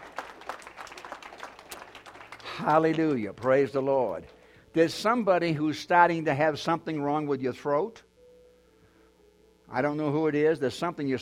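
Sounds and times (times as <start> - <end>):
church congregation clapping: 0.0 - 4.5
speech: 2.6 - 8.1, 9.7 - 11.1.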